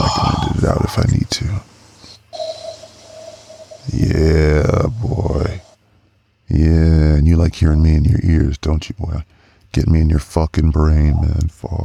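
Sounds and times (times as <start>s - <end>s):
low hum: 0.0s - 11.8s
speech: 0.7s - 1.7s, 7.6s - 11.8s
long sniff through the nose of a popper: 1.7s - 4.2s.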